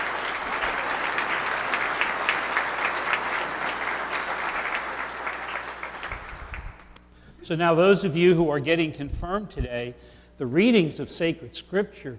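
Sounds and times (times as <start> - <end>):
audience applause: 0.0 - 7.0
speech: 7.5 - 12.1.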